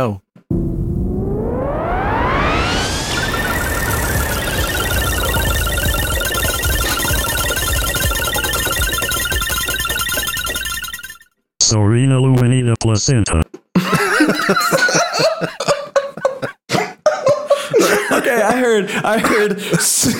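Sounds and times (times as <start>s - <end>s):
speech: 0.0s - 0.2s, 11.7s - 13.6s, 14.4s - 15.7s, 18.7s - 20.1s
randomizer sound effect whining tone: 0.5s - 11.2s
laughter: 13.8s - 20.1s.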